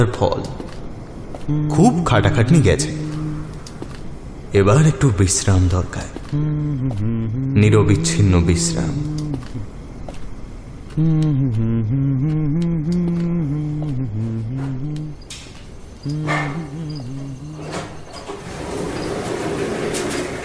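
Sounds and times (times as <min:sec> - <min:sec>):
speech: 0:00.0 - 0:00.6, 0:01.5 - 0:03.0, 0:04.5 - 0:09.7, 0:11.0 - 0:14.7
apartment-complex elevator humming: 0:00.0 - 0:20.4
apartment-complex elevator door opening on the eleventh floor: 0:16.2 - 0:20.4.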